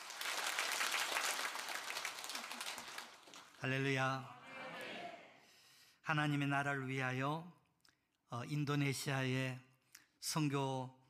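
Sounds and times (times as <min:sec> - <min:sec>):
church congregation applauding: 0:00.0 - 0:03.6
speech: 0:03.6 - 0:04.4, 0:06.1 - 0:07.6, 0:08.3 - 0:11.0.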